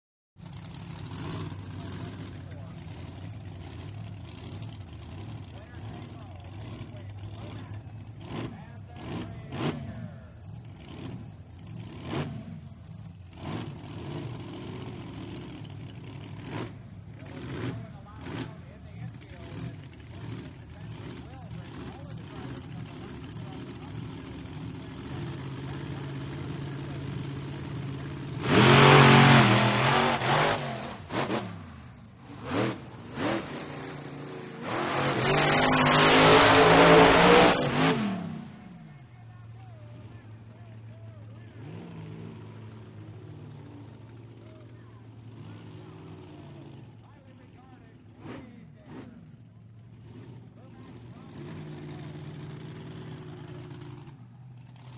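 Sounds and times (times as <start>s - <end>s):
monster trucks idling and revving: 0.4s - 54.9s
crowds at monster truck race: 0.6s - 12.8s, 15.1s - 29.0s, 37.8s - 54.9s.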